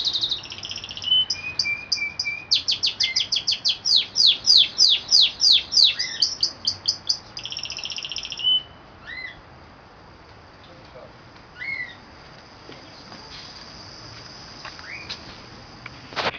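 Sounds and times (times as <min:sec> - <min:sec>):
canary singing: 0:00.0 - 0:09.4, 0:11.6 - 0:12.1.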